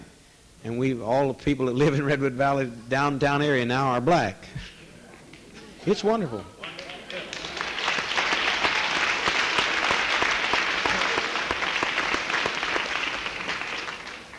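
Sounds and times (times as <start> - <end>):
speech: 0.6 - 4.7, 5.8 - 6.6
audience applause: 6.6 - 14.3.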